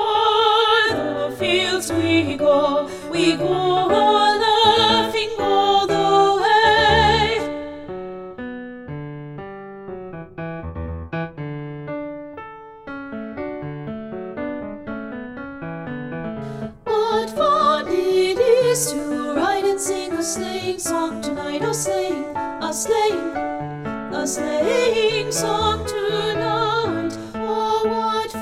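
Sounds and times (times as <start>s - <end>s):
isolated alto voice singing a practice track: 0.0s - 7.8s, 16.8s - 23.4s, 24.1s - 28.4s.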